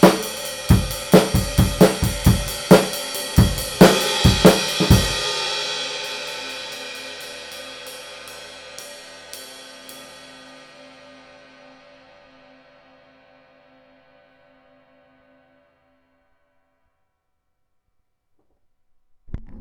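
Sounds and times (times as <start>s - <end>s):
20-inch vintage ride cymbal: 0.0s - 11.9s.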